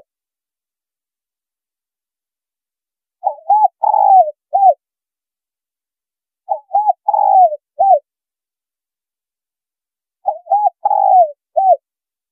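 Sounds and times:
spotted dove giving coo phrases: 0:03.2 - 0:04.8, 0:06.5 - 0:08.1, 0:10.2 - 0:11.8.

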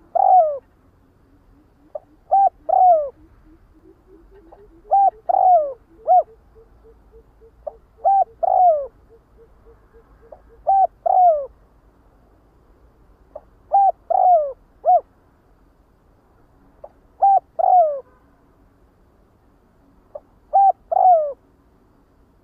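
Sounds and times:
spotted dove cooing: 0:00.0 - 0:11.6, 0:13.3 - 0:15.1, 0:16.8 - 0:18.1, 0:20.1 - 0:21.4.

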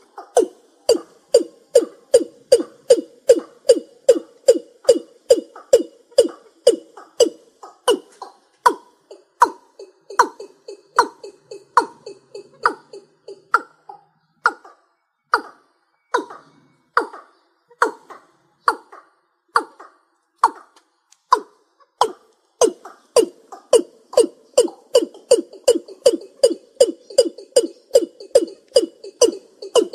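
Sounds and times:
East Asian bullfrog croaking: 0:00.2 - 0:14.7, 0:21.3 - 0:29.9.

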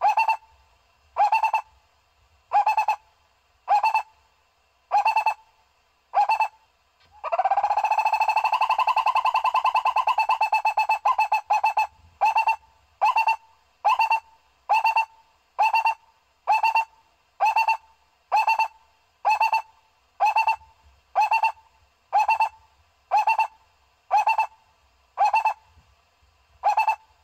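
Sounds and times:
owl hooting: 0:00.0 - 0:00.6, 0:01.2 - 0:01.8, 0:02.5 - 0:04.2, 0:04.9 - 0:05.5, 0:06.1 - 0:24.6, 0:25.2 - 0:25.7, 0:26.6 - 0:27.2.

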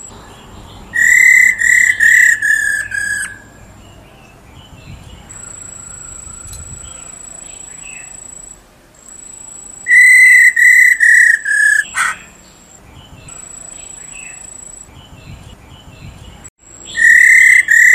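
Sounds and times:
Black-throated laughingthrush whistling: 0:00.9 - 0:03.7, 0:05.3 - 0:12.4, 0:16.8 - 0:17.9.

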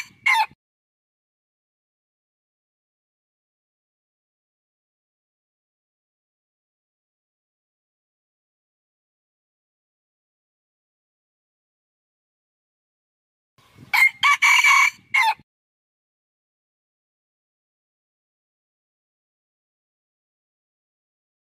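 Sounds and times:
red junglefowl crowing: 0:00.0 - 0:00.6, 0:13.9 - 0:15.4.

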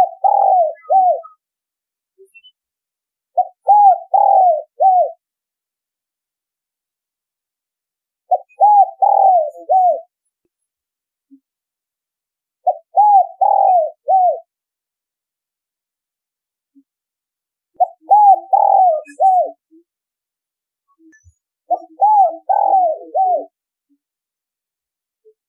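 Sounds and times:
spotted dove cooing: 0:00.0 - 0:01.4, 0:03.4 - 0:05.2, 0:08.3 - 0:10.1, 0:12.6 - 0:14.5, 0:17.8 - 0:19.6, 0:21.7 - 0:23.6.

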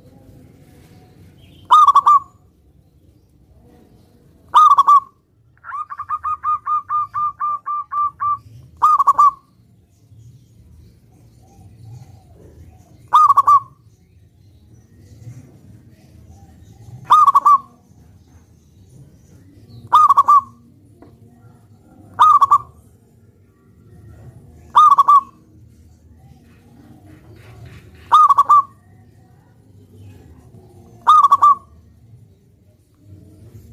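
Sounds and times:
zebra dove rolling stuttered cooing: 0:01.6 - 0:02.5, 0:04.5 - 0:09.5, 0:11.4 - 0:13.8, 0:16.3 - 0:17.8, 0:19.7 - 0:23.0, 0:24.0 - 0:29.1, 0:30.0 - 0:31.8.

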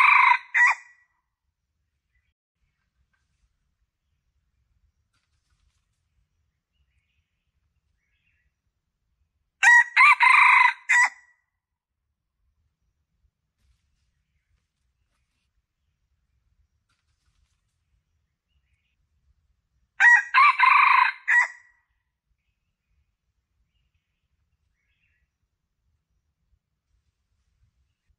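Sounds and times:
Red junglefowl crowing: 0:00.0 - 0:00.9, 0:09.6 - 0:11.2, 0:20.0 - 0:21.7.

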